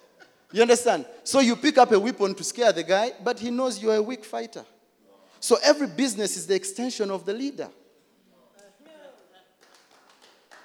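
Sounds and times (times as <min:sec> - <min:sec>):
speech: 0:00.5 - 0:04.8, 0:05.4 - 0:07.8
scattered hand claps: 0:08.6 - 0:10.6.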